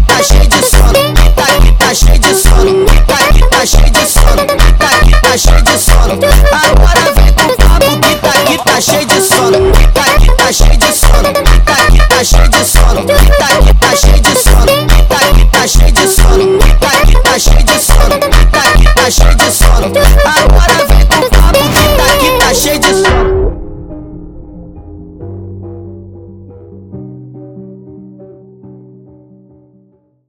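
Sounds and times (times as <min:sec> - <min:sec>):
sped up funk music: 0:00.0 - 0:23.4.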